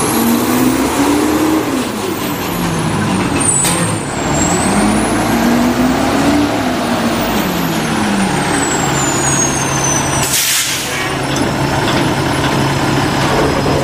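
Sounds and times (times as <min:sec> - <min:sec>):
garbage truck engine rumbling and groaning: 0:00.0 - 0:13.8
garbage truck air brake hiss: 0:10.2 - 0:11.2.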